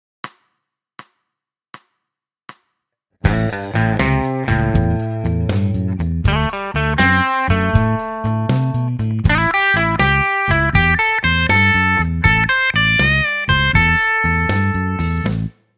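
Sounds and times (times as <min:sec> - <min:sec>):
blues music: 0:03.2 - 0:15.5.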